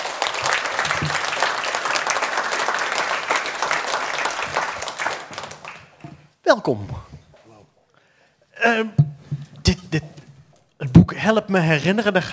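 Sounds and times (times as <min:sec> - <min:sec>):
audience applause: 0:00.0 - 0:06.1
speech: 0:06.5 - 0:07.1, 0:08.6 - 0:09.0, 0:09.7 - 0:10.1, 0:11.2 - 0:12.3.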